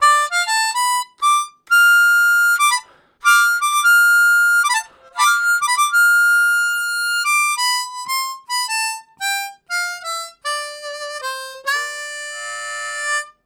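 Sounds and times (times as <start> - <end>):
minor harmonica riffs: 0.0 - 13.4.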